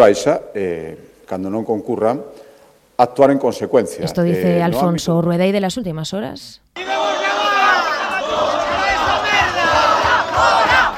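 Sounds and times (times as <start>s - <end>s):
speech: 0.0s - 2.4s, 3.0s - 6.9s
protesters chanting and shouting: 6.8s - 10.9s.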